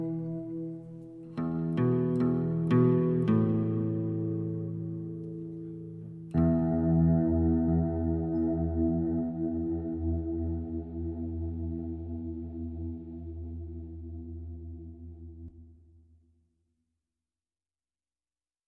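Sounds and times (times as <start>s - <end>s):
guitar playing in E minor: 0.0s - 15.0s.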